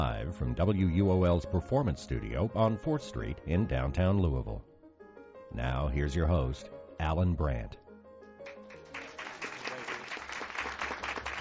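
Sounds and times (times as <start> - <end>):
speech: 0.0 - 4.7, 5.5 - 7.8
studio audience applause: 8.5 - 11.4.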